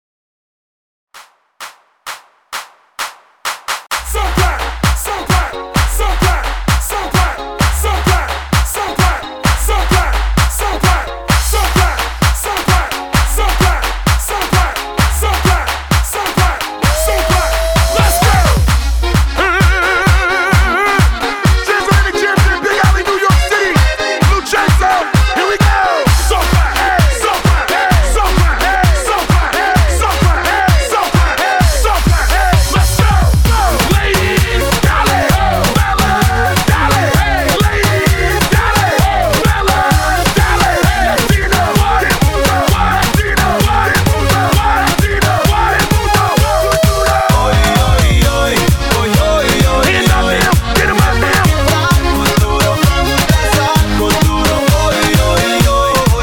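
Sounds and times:
kuduro party music: 1.2s - 56.2s.

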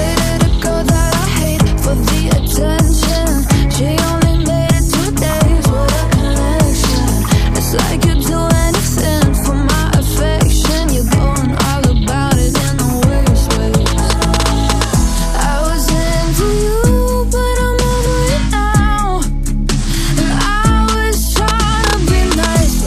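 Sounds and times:
breakbeat: 0.0s - 22.8s.

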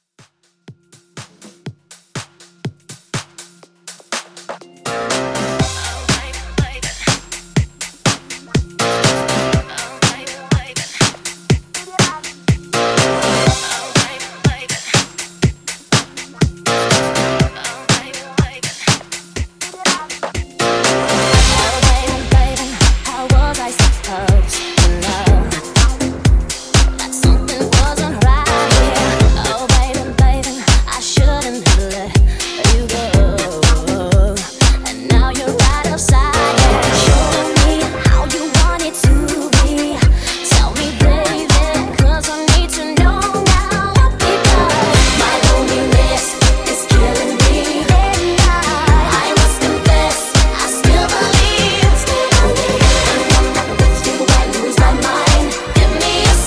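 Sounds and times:
90s pop club mix at 122 BPM: 0.2s - 56.4s.

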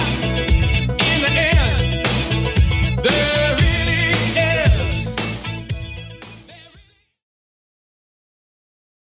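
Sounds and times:
1980s style music at 115 bpm: 0.0s - 7.0s.

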